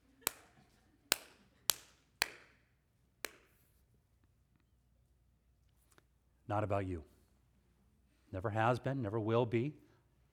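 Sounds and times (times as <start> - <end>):
brief hand clapping: 0.0 - 2.6, 3.2 - 3.6
speech: 6.5 - 7.2, 8.3 - 9.8.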